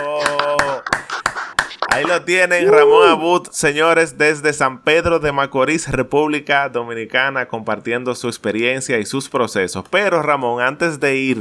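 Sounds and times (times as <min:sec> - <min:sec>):
hands clapping: 0:00.0 - 0:02.2
speech: 0:02.0 - 0:11.4.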